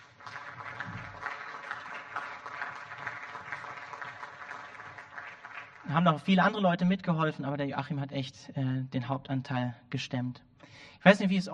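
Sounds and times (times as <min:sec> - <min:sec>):
audience applause: 0:00.0 - 0:06.6
speech: 0:05.9 - 0:11.5.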